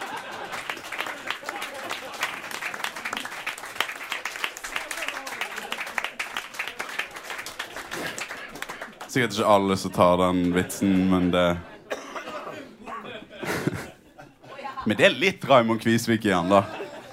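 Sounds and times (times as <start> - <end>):
laughter: 0.0 - 3.3, 4.8 - 15.2, 16.2 - 17.1
audience applause: 0.0 - 11.6
faint crowd murmur: 0.0 - 15.0, 16.2 - 17.1
speech: 9.2 - 11.7, 14.9 - 16.8.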